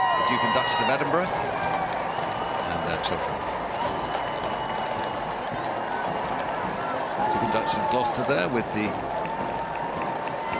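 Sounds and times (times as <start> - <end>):
large crowd cheering and murmuring: 0.0 - 10.5
speech: 0.3 - 1.9, 2.9 - 3.6, 7.5 - 9.2.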